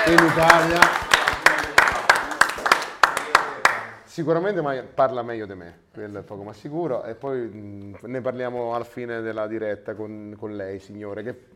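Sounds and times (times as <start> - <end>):
audience rhythmic applause: 0.0 - 4.0
speech: 0.1 - 1.0, 4.2 - 11.5.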